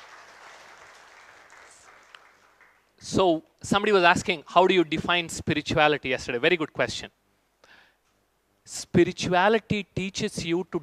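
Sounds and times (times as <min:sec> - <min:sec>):
audience applause: 0:00.0 - 0:02.9
speech: 0:03.0 - 0:07.2, 0:08.7 - 0:10.8.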